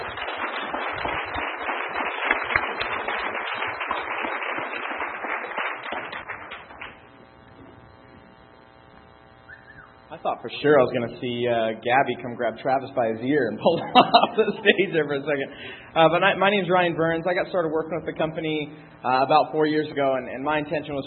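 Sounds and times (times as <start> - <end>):
audience applause: 0.0 - 7.0
speech: 10.2 - 21.0
laughter: 13.6 - 15.5.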